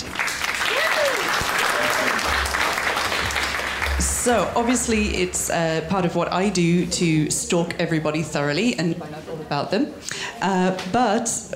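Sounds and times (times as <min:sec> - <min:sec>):
audience applause: 0:00.0 - 0:05.0
speech: 0:04.2 - 0:11.5.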